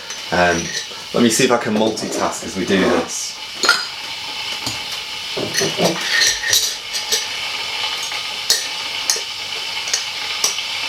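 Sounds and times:
cups and spoons clinking while making organic Colombian roast coffee: 0.0 - 1.0, 3.6 - 7.3, 8.0 - 9.3
steady hiss: 0.0 - 10.8
speech: 0.3 - 3.8, 5.4 - 6.4.

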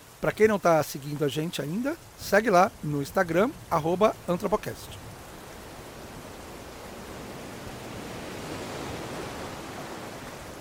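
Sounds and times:
rain falling on a veranda: 0.0 - 10.5
speech: 0.2 - 5.0.

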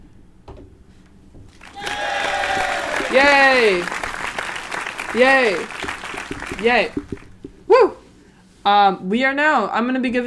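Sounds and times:
applause sound effect: 1.5 - 7.3
speech: 3.1 - 4.0, 5.2 - 5.9, 6.6 - 7.1, 8.7 - 10.2.

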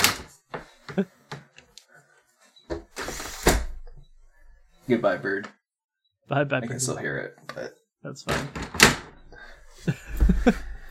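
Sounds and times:
speech: 1.0 - 1.2, 4.9 - 5.6, 6.3 - 8.8
window being closed: 2.7 - 3.8.

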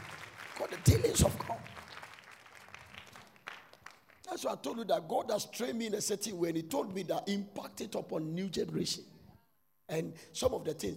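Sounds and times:
audience clapping: 0.0 - 4.5
speech: 0.7 - 1.7, 4.4 - 9.2, 9.9 - 10.9.

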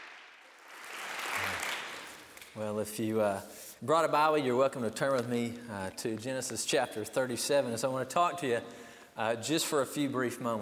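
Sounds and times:
audience applause: 0.0 - 2.3
speech: 2.6 - 10.6.

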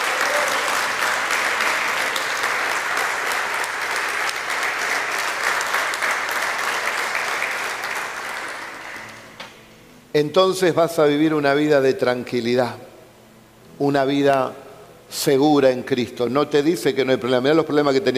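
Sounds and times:
large crowd applauding: 0.0 - 9.4
speech: 10.2 - 12.9, 13.8 - 18.1.

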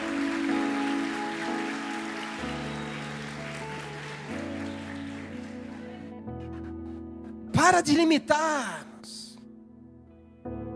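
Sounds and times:
audience applauding: 0.0 - 6.7
sustained keyboard chords: 0.0 - 10.7
speech: 7.7 - 9.2.

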